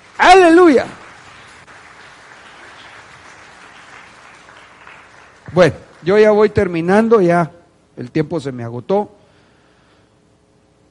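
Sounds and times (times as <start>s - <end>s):
audience applause: 0.0s - 6.6s
speech: 0.3s - 1.0s, 5.6s - 9.2s.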